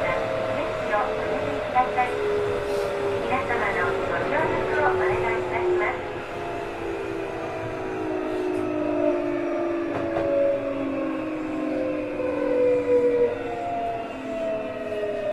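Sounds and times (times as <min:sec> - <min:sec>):
Tokyu 7700 train: 0:00.0 - 0:15.3.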